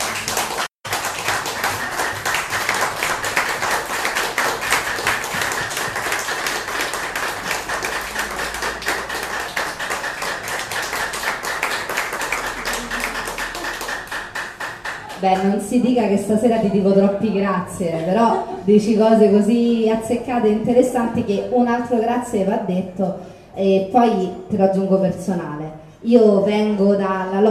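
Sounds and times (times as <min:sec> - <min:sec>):
audience applause: 0:00.0 - 0:15.2
speech: 0:15.2 - 0:27.4.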